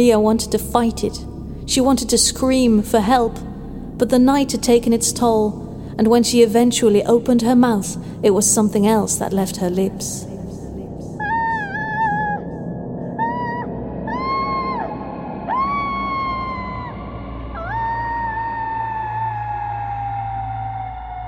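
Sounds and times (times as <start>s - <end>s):
speech: 0.0s - 10.3s
low steady rumble: 0.0s - 19.8s
wolves howling: 11.2s - 21.2s.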